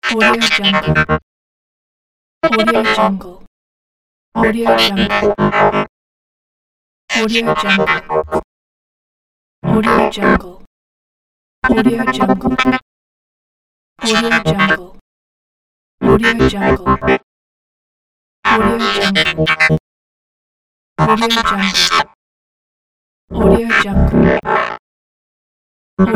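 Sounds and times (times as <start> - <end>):
robot droid talk: 0.0 - 1.2, 2.4 - 3.5, 4.4 - 5.9, 7.1 - 8.5, 9.6 - 10.7, 11.6 - 12.8, 14.0 - 15.0, 16.0 - 17.2, 18.5 - 19.8, 21.0 - 22.2, 23.3 - 24.8, 26.0 - 26.1.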